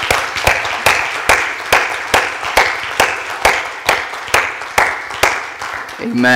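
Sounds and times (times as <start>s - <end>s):
crowd clapping in rhythm: 0.0s - 6.3s
scattered applause: 0.0s - 6.3s.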